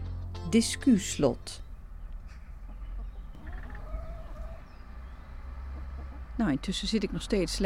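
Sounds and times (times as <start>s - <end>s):
speech: 0.5s - 1.7s, 6.5s - 7.6s
chickens clucking in a city garden: 1.9s - 6.9s.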